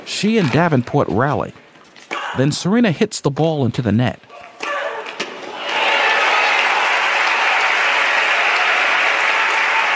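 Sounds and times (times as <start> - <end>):
speech: 0.1 - 1.6, 2.3 - 4.3
tennis crowd cheering: 4.4 - 9.9
tennis crowd applauding: 5.5 - 9.9.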